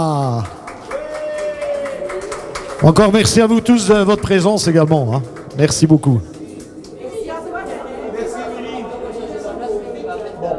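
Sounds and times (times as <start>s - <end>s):
audience applause: 0.0s - 7.9s
speech: 2.8s - 6.3s.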